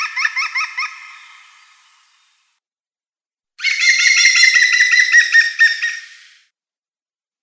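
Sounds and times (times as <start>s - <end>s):
European green woodpecker laughing calls: 0.0s - 1.6s, 3.6s - 6.3s.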